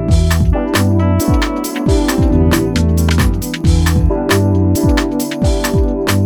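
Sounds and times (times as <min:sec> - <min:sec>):
saxophone: 0:00.1 - 0:06.1.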